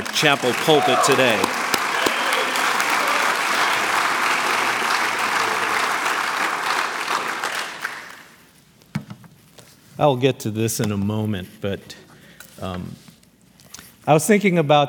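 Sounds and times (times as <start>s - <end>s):
audience applause: 0.0s - 8.4s
speech: 0.1s - 1.6s, 10.0s - 12.0s, 12.6s - 13.1s, 14.1s - 14.8s.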